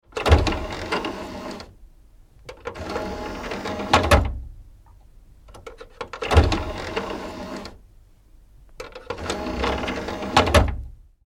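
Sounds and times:
CD or DVD drive loading and ejecting: 0.1s - 1.8s, 2.5s - 4.4s, 5.6s - 7.8s, 8.8s - 10.8s.

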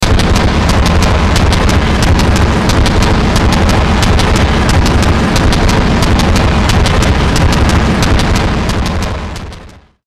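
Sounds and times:
distorted pounding rhythmic click hits: 0.0s - 10.0s.

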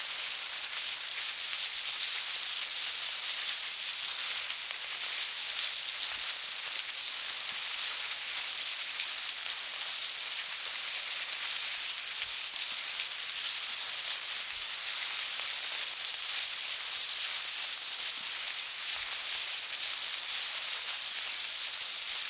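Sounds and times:
bugs crawling in a hive: 0.0s - 22.2s.

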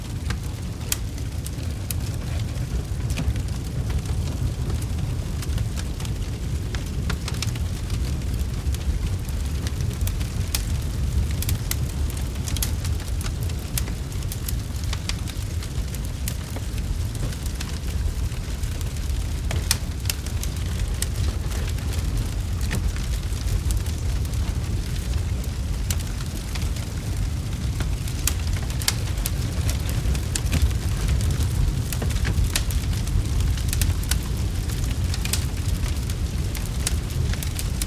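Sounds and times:
fire building from small to large blaze: 0.0s - 37.8s.

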